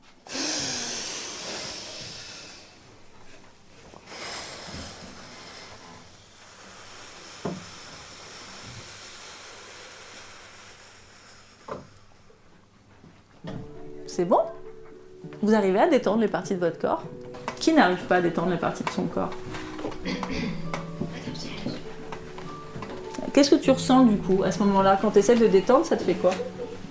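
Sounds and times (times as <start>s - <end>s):
person inhaling and blowing hard through a straw: 0.2s - 2.8s, 4.1s - 12.2s
speech: 14.2s - 14.6s, 15.2s - 20.6s, 23.4s - 26.6s.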